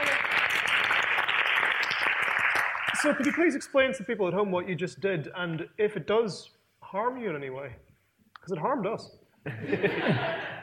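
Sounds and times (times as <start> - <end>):
audience applause: 0.0 - 3.5
speech: 3.0 - 10.5
laughter: 9.5 - 10.6.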